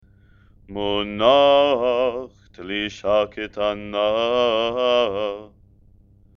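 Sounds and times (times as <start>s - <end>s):
person chanting haftarah with trope: 0.7s - 5.5s.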